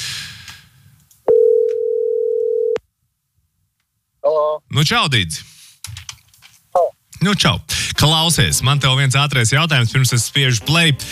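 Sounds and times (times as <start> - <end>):
outgoing telephone call ringing tone: 1.3 - 2.8
speech: 4.4 - 5.5, 7.2 - 11.1.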